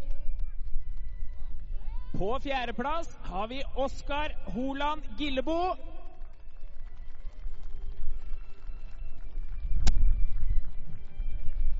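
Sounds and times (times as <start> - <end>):
cheers and voices: 0.0 - 3.0
crowd clapping: 0.0 - 11.7
speech: 2.2 - 5.9.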